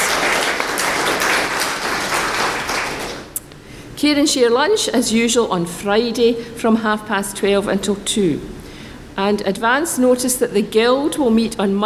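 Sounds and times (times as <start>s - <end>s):
audience applause: 0.0s - 3.3s
speech: 4.0s - 8.6s, 9.2s - 11.8s.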